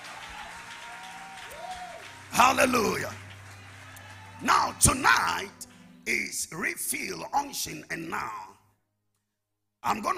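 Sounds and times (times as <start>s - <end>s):
audience clapping: 0.0s - 6.0s
speech: 2.3s - 3.2s, 4.4s - 8.5s, 9.8s - 10.1s.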